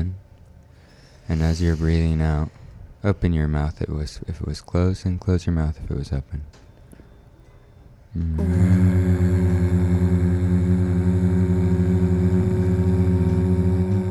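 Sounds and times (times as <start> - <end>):
speech: 1.3 - 6.6, 8.1 - 9.8
person humming: 8.1 - 14.1.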